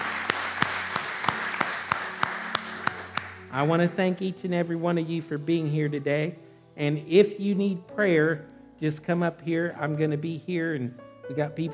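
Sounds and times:
scattered applause: 0.0 - 3.8
audience clapping hands in a steady rhythm: 0.0 - 3.9
speech: 3.6 - 11.7.

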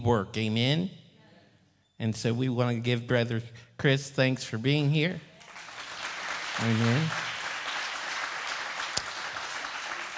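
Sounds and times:
speech: 0.0 - 1.0, 2.0 - 5.3, 6.6 - 7.3
applause and hand clapping in a church: 5.4 - 10.1.

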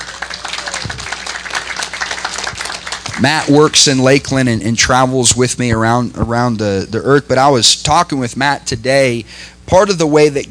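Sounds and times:
audience applause: 0.0 - 3.7
speech: 3.2 - 10.5.

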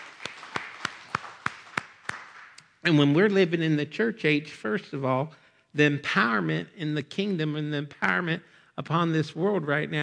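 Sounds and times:
church congregation clapping hands in unison: 0.0 - 2.8
speech: 2.8 - 10.0.

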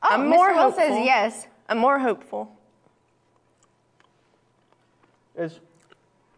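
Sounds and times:
speech: 0.1 - 2.6, 5.4 - 5.7
chewing a fudgy brownie: 2.7 - 6.3.

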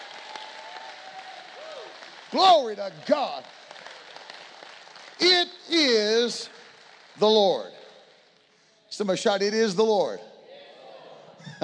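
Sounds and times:
audience clapping hands: 0.0 - 8.7
speech: 2.3 - 3.6, 5.2 - 6.6, 7.2 - 7.7, 9.0 - 10.3.

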